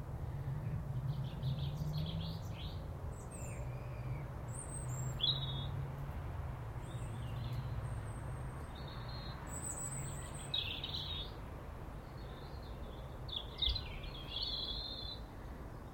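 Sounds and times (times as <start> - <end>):
song thrush singing high in a tree: 0.2 - 5.8, 6.8 - 15.9.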